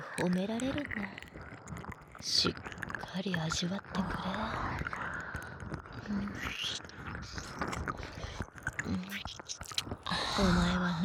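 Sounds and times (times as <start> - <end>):
person whispering: 0.0 - 1.2, 2.2 - 5.3, 6.0 - 11.0
speech: 0.2 - 1.4, 2.2 - 4.6, 6.1 - 8.1, 10.4 - 11.0
wet kissing with lip smacks: 8.7 - 10.0.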